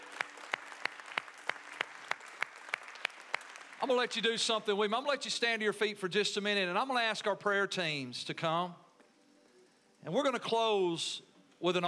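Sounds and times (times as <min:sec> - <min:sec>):
audience hand clapping in praise: 0:00.0 - 0:04.7
speech: 0:03.8 - 0:08.8, 0:10.0 - 0:11.8.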